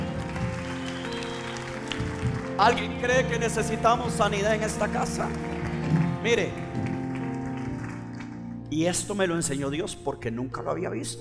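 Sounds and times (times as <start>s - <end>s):
audience applause: 0.0s - 3.7s, 4.7s - 8.5s
speech: 2.6s - 5.6s, 6.2s - 6.6s, 8.7s - 11.2s.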